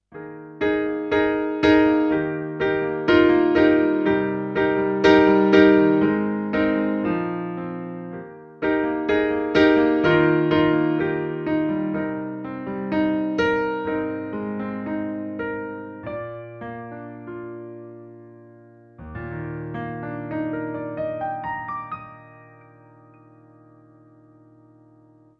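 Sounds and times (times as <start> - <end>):
Numa Compact 2 stage piano: 0.0 - 25.3.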